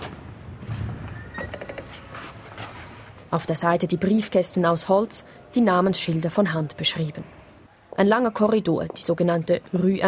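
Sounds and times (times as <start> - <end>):
door opening to the entrance hall of the Kalkbreite: 0.0 - 2.8
speech: 3.3 - 7.4, 8.0 - 10.0.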